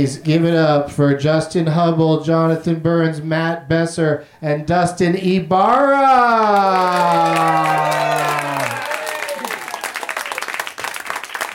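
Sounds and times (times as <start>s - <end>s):
speech: 0.0s - 7.9s
audience applause: 6.4s - 11.5s.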